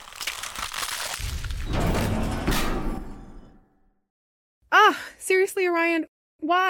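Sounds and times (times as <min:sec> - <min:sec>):
truck roof being demolished: 0:00.0 - 0:02.6
speech: 0:05.6 - 0:06.6.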